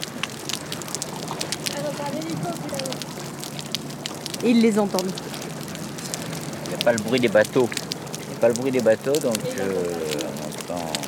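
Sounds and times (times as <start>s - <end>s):
underwater crackling: 0.0s - 11.0s
speech: 4.4s - 5.3s, 6.8s - 7.8s, 8.4s - 10.0s.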